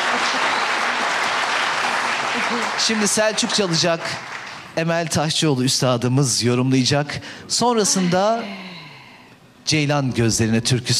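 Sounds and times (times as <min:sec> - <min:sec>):
audience applause at a Turkish folk music concert: 0:00.0 - 0:04.8
speech: 0:02.5 - 0:08.8, 0:09.6 - 0:10.9.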